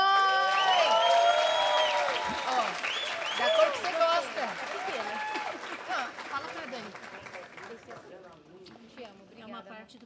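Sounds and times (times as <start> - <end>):
voices cheering: 0.0 - 5.6
small group clapping: 0.0 - 8.3.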